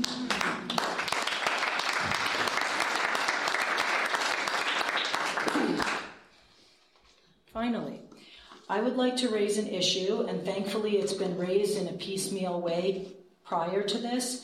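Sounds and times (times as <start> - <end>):
crowd applauding: 0.0 - 6.2
speech: 7.6 - 8.1, 8.7 - 14.4.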